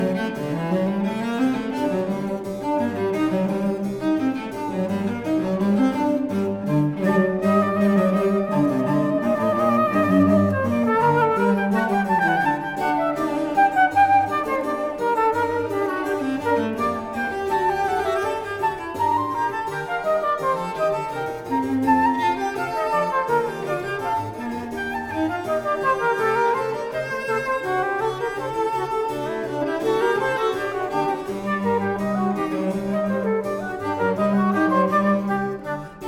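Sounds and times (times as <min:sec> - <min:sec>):
cello: 0:00.0 - 0:36.0
flute: 0:00.0 - 0:36.0.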